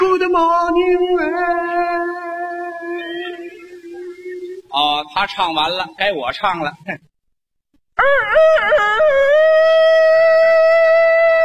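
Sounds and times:
speech: 0:00.3 - 0:01.7, 0:04.7 - 0:07.1, 0:08.0 - 0:10.0
person imitating a Japanese fox's howl: 0:08.0 - 0:11.4.

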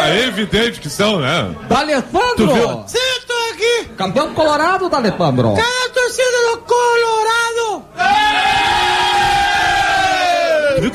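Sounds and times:
speech: 0:00.1 - 0:07.2
people shouting together in a studio: 0:08.0 - 0:10.9.

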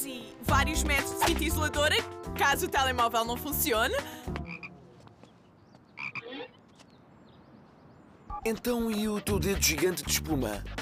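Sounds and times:
speech: 0:00.1 - 0:04.3, 0:08.4 - 0:10.8
toad croaking: 0:04.4 - 0:04.9, 0:06.0 - 0:06.6.

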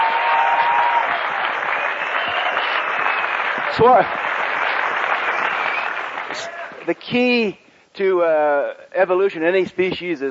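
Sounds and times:
audience applause: 0:00.0 - 0:06.8
speech: 0:03.8 - 0:04.4, 0:06.4 - 0:10.2.

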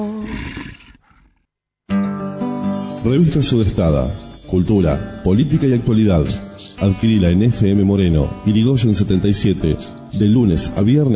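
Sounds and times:
loud throaty wolf growl with harsh buzzing tone: 0:00.2 - 0:01.5
speech: 0:03.0 - 0:11.1.

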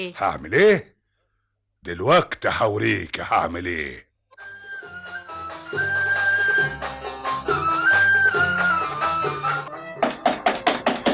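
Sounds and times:
speech: 0:00.0 - 0:00.9, 0:01.8 - 0:04.1, 0:05.7 - 0:06.0
music: 0:04.3 - 0:11.1
urgent knocking on a door in an Egyptian radio drama: 0:10.0 - 0:11.1.

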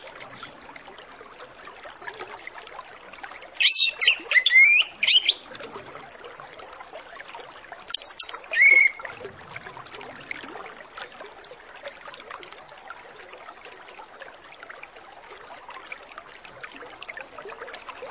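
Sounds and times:
Orange-headed Thrush singing varied whistles: 0:03.6 - 0:05.4, 0:08.0 - 0:09.0.

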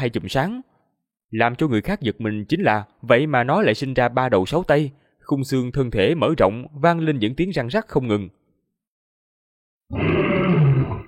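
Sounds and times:
speech: 0:00.0 - 0:00.7, 0:01.3 - 0:08.4, 0:09.9 - 0:11.0
creature roaring loudly: 0:09.9 - 0:11.0.

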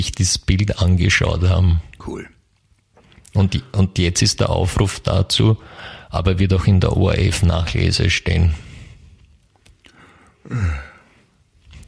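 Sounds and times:
speech: 0:00.0 - 0:02.4, 0:03.4 - 0:08.7, 0:10.5 - 0:10.9
person yawning: 0:10.4 - 0:11.1.

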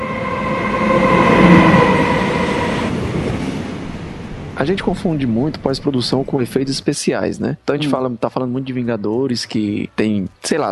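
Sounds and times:
high-speed train rushing past: 0:00.0 - 0:06.9
speech: 0:04.6 - 0:10.7.

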